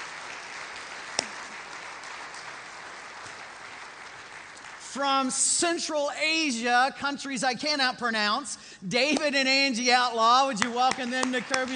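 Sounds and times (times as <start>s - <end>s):
audience applause: 0.0s - 5.0s, 10.8s - 11.7s
speech: 5.0s - 11.7s.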